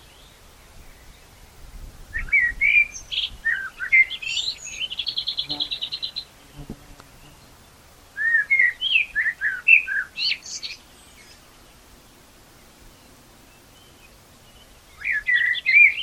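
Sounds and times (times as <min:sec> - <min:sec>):
common blackbird singing: 0:02.2 - 0:07.5, 0:08.2 - 0:11.6, 0:13.0 - 0:16.0.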